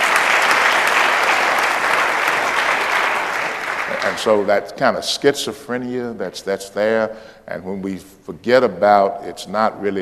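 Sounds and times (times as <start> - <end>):
audience hand clapping: 0.0 - 4.7
speech: 4.1 - 10.0.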